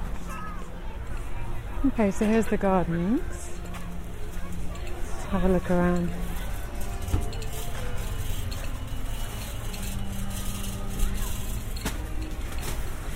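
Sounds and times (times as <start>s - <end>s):
speech: 1.8s - 3.5s, 5.3s - 6.3s
rustling from an ice cream van being readied: 3.6s - 13.1s.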